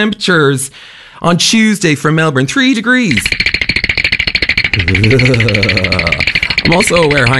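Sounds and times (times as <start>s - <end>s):
speech: 0.0s - 3.5s, 4.8s - 7.3s
teeth-chattering sound effect: 3.0s - 7.3s.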